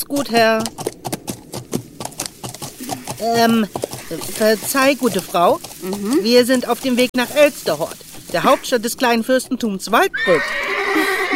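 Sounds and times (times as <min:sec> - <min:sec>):
speech: 0:00.0 - 0:00.9, 0:03.2 - 0:11.3
horse hooves clip-clopping on a country road: 0:00.0 - 0:11.3.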